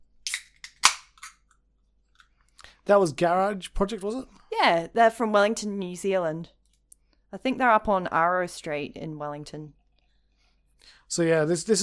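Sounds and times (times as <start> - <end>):
cracking open a lager: 0.2 - 1.5
speech: 2.9 - 6.6, 7.3 - 9.8, 10.8 - 11.8.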